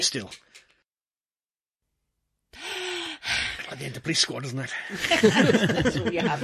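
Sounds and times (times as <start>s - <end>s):
speech: 0.0s - 0.6s, 3.7s - 6.4s
loud breathy inhalation from a person during a breath-holding exercise: 2.6s - 3.6s
laughter: 4.9s - 6.4s.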